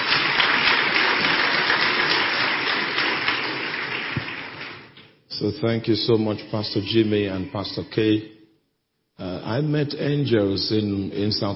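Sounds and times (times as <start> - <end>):
crowd applauding: 0.0 - 5.0
speech: 5.4 - 8.4, 9.5 - 11.5.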